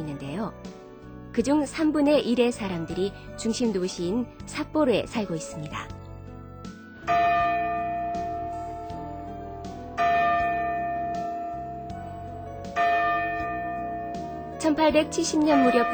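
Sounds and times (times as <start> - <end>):
speech: 0.5 - 0.8, 1.4 - 6.0, 14.8 - 15.9
clock tower bell tolling: 7.1 - 15.9.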